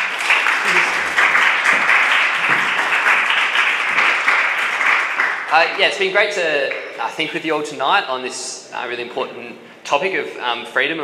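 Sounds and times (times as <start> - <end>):
audience applause: 0.0 - 7.0
speech: 5.6 - 11.0.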